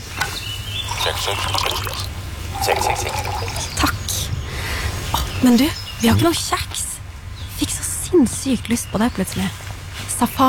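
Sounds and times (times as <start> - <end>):
coffee pouring into a cup: 0.8 - 3.9
speech: 1.2 - 4.0, 5.4 - 6.9, 8.2 - 9.6, 10.2 - 10.4.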